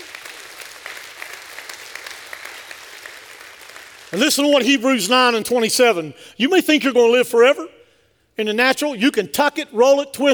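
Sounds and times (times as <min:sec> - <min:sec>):
audience clapping in praise: 0:00.0 - 0:04.7
speech: 0:04.1 - 0:07.8, 0:08.4 - 0:10.3.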